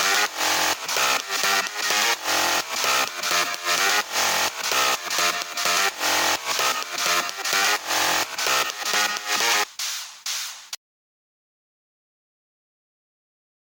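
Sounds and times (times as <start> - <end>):
short electronic music for video games: 0.0 - 10.8.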